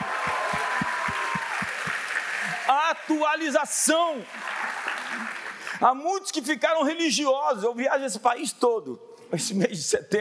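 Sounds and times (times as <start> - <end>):
audience applause: 0.0 - 5.8
speech: 2.7 - 4.5, 5.2 - 10.1.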